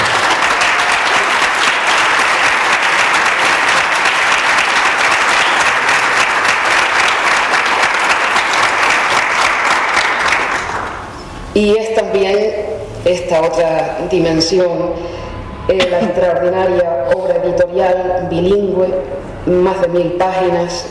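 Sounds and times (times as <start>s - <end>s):
audience clapping: 0.0s - 11.2s
speech: 11.6s - 20.8s.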